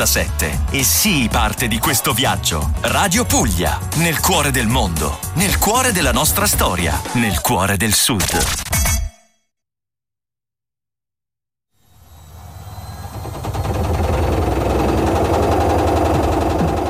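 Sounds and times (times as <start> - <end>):
speech: 0.0 - 8.7
old washing machine rattling and banging: 13.3 - 16.8.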